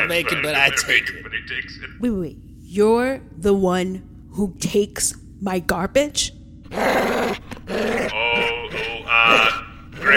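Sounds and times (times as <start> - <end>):
speech: 0.1 - 8.2, 9.2 - 10.1
dog growling: 6.7 - 10.1.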